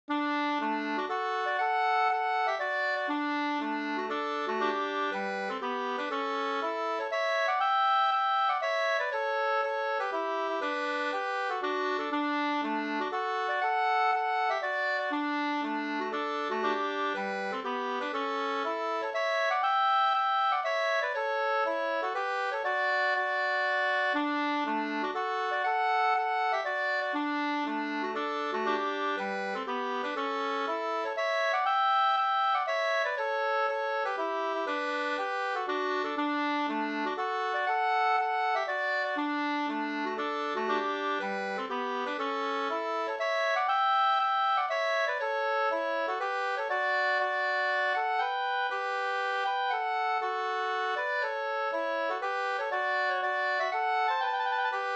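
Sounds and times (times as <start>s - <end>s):
polska folk dance tune in D major: 0.1s - 54.9s.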